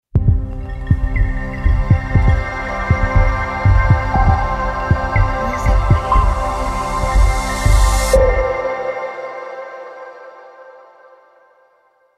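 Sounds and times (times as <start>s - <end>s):
ambient logo sound: 0.2s - 9.6s.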